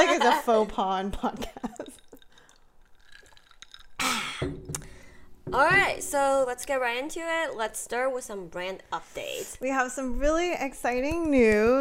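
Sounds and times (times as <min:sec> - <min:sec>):
speech: 0:00.4 - 0:01.7, 0:05.5 - 0:11.8
ice in a drink glass: 0:01.4 - 0:04.3.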